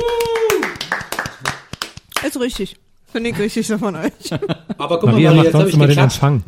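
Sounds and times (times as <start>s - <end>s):
person whooping: 0.0s - 0.9s
hand clapping: 0.0s - 2.5s
speech: 2.3s - 6.4s
laughter: 4.0s - 5.1s.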